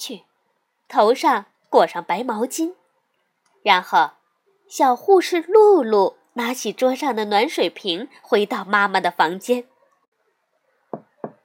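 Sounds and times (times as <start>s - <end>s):
speech: 0.0s - 0.3s, 0.9s - 2.8s, 3.6s - 9.7s
knocking on a door: 10.9s - 11.4s.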